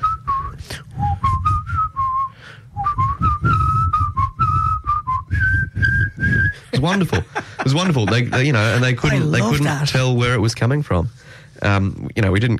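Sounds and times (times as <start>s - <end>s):
person whistling the opening phrase of a protest song: 0.0s - 6.8s
low rumble of ambient noise: 0.0s - 12.5s
laughter: 6.6s - 9.9s
speech: 6.8s - 12.5s.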